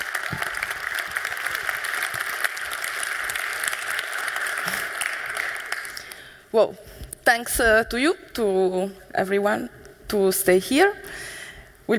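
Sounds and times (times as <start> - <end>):
audience applause: 0.0 - 6.4
speech: 6.5 - 11.3.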